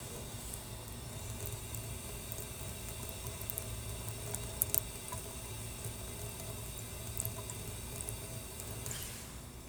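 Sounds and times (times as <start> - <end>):
water fountain: 0.0 - 9.0.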